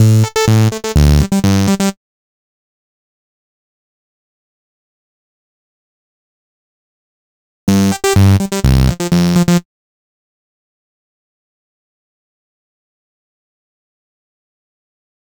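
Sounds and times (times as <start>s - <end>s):
afterhours EDM electro bass: 0.0s - 1.9s, 7.7s - 9.6s.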